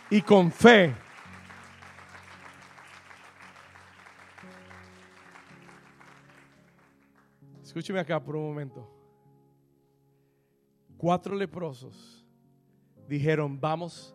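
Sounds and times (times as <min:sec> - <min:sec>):
audience applause: 0:00.0 - 0:07.3
speech: 0:00.1 - 0:01.0, 0:07.8 - 0:09.0, 0:11.0 - 0:12.2, 0:13.1 - 0:14.1.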